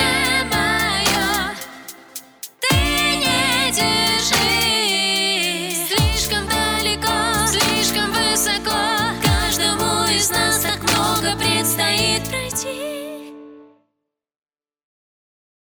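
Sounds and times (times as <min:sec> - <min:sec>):
blues duet: 0:00.0 - 0:12.6.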